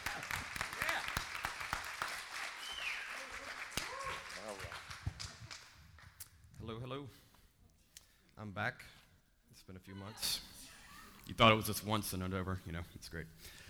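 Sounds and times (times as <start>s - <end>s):
audience applause welcoming a speaker: 0.0s - 6.2s
speech: 6.9s - 7.2s, 8.4s - 9.0s, 9.6s - 10.5s, 11.3s - 13.6s.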